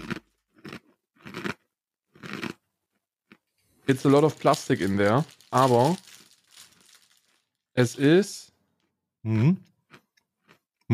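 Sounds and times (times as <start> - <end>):
person biting and chewing a cookie: 0.0 - 2.6, 3.2 - 8.2
speech: 3.9 - 6.1, 7.8 - 8.5, 9.2 - 9.7.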